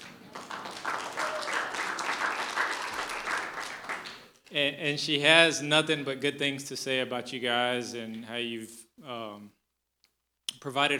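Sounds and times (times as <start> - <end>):
audience applause: 0.0 - 4.4
speech: 4.5 - 9.6, 10.6 - 10.9.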